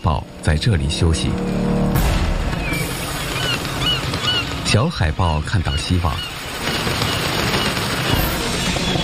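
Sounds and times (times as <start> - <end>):
speech: 0.0 - 1.6, 4.7 - 6.8
seagulls calling: 2.4 - 9.0.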